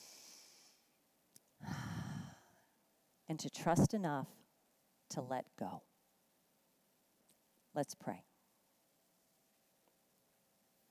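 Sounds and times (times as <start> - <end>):
deep breath during a church service prayer: 0.0 - 0.8, 1.6 - 2.7
speech: 3.3 - 4.4, 5.1 - 5.9, 7.7 - 8.3.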